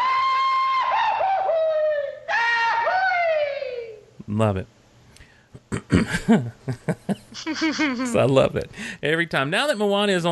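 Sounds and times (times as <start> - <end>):
classic cartoon falling yell sound effect: 0.0 - 4.1
speech: 4.3 - 4.8, 5.9 - 10.3
laughter: 5.9 - 8.2.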